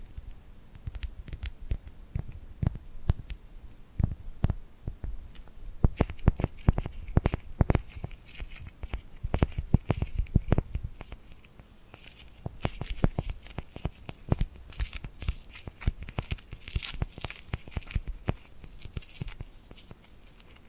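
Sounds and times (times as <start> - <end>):
sharp clicks and pops: 0.0 - 3.4, 4.0 - 20.6
sticky peeling and tearing crackles from glued hands: 0.0 - 3.4, 4.0 - 20.6
soft hiss: 0.0 - 20.6.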